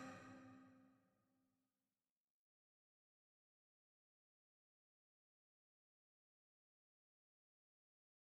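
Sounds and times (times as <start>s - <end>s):
guitar: 0.0s - 0.8s.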